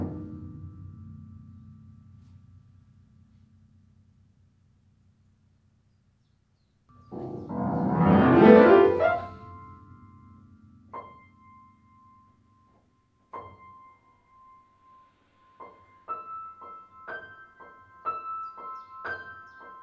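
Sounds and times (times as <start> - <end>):
bird music: 7.1 - 9.4.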